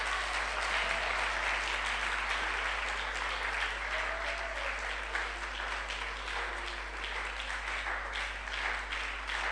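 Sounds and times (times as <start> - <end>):
audience clapping: 0.0 - 9.4.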